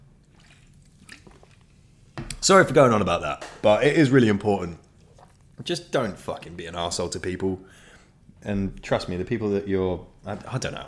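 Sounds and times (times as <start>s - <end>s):
sipping a drink: 0.2s - 2.0s, 4.8s - 6.0s
speech: 2.4s - 4.8s, 5.6s - 7.8s, 8.4s - 10.8s.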